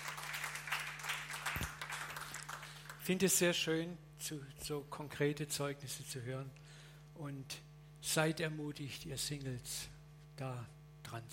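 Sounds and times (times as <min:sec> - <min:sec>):
crowd applauding: 0:00.0 - 0:03.1
low steady hum: 0:00.0 - 0:11.3
speech: 0:03.1 - 0:06.6, 0:07.2 - 0:11.3.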